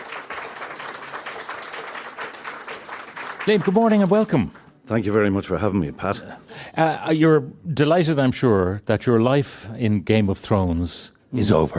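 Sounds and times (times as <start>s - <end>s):
studio audience applause for an actor at Anantara, the Marker in Dublin: 0.0s - 4.7s
speech: 3.4s - 11.7s.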